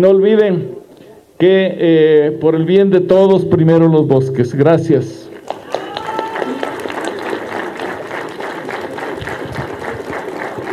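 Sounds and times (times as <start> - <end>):
speech: 0.0 - 0.8, 1.4 - 5.2
audience applause: 5.4 - 10.7.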